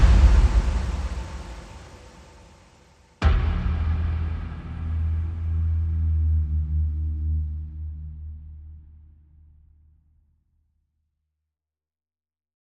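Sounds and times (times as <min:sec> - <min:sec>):
trailer percussion: 0:00.0 - 0:09.6.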